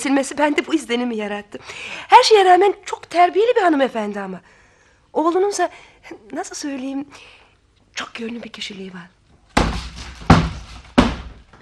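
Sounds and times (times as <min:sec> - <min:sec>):
speech: 0:00.0 - 0:07.4, 0:08.0 - 0:09.2
person losing balance and bumping into a door: 0:09.5 - 0:11.5.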